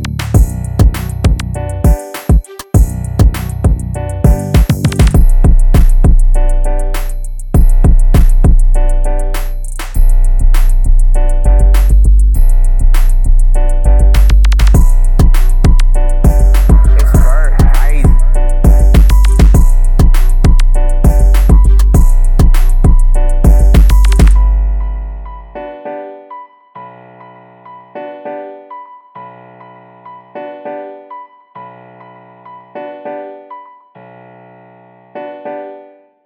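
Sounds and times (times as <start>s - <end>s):
B minor 200 BPM type beat: 0.0s - 24.5s.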